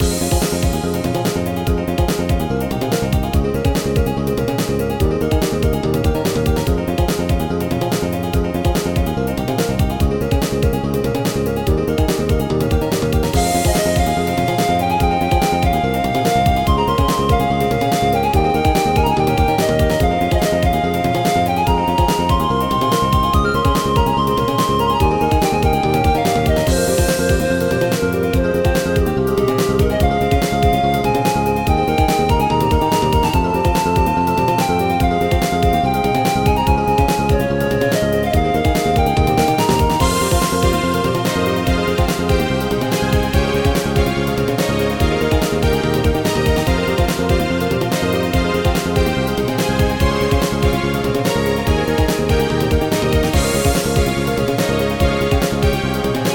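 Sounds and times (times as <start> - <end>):
upbeat music: 0.0 - 56.3.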